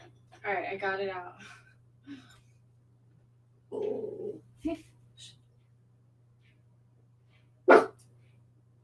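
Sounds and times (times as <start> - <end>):
speech: 0.5 - 2.3
dog barking: 7.7 - 8.0.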